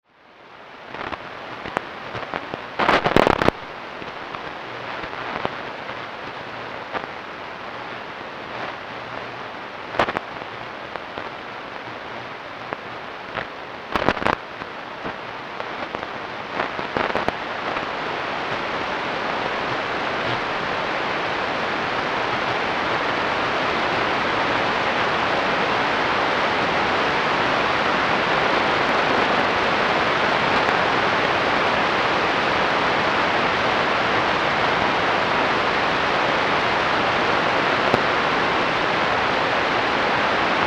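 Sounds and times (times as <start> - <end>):
22.21 MHz shortwave radio signal: 0.1 - 40.6.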